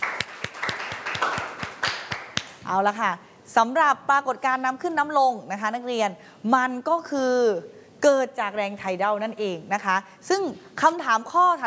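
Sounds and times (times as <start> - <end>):
classroom applause: 0.0 - 2.6
speech: 2.7 - 11.6.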